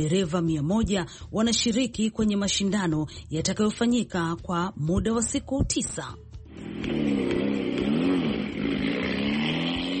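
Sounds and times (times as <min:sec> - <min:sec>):
speech: 0:00.0 - 0:07.3
Rover Vitesse rally car engine in the East African Safari Rally: 0:06.4 - 0:09.9.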